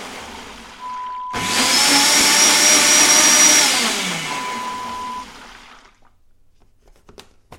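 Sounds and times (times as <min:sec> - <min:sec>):
food blender: 0:00.0 - 0:06.2.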